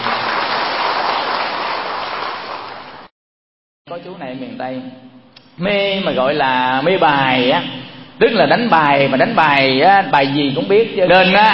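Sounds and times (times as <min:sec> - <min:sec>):
audience applause: 0:00.0 - 0:03.1
speech: 0:03.9 - 0:11.5.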